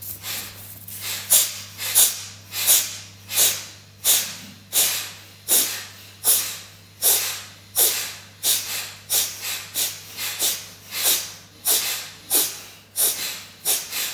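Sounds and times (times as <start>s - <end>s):
sharp forceful breath exhales from the lower belly in a breathing exercise: 0.2s - 14.1s.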